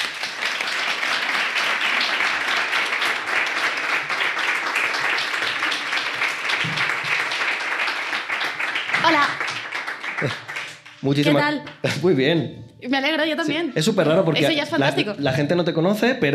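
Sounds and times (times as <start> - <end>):
audience applause: 0.0 - 11.4
speech: 11.0 - 16.3.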